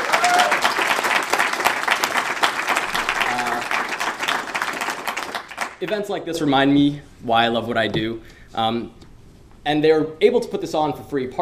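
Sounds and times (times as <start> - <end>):
audience applause for the organizers: 0.0 - 5.8
speech: 5.8 - 9.0, 9.6 - 11.4.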